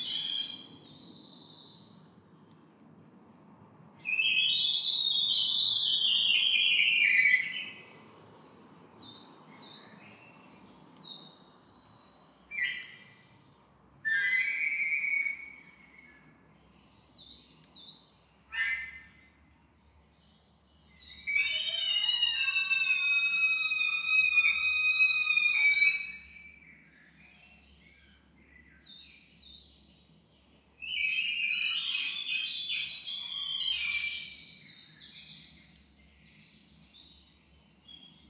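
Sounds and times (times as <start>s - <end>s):
forest dawn ambience: 0.0s - 3.4s, 4.0s - 38.2s.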